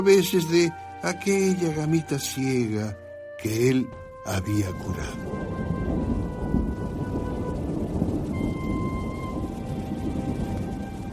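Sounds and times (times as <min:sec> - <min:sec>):
speech: 0:00.0 - 0:05.4
steady dense rain on a rainy night: 0:00.0 - 0:11.1
deep continuous rumble of thunder: 0:04.0 - 0:11.1.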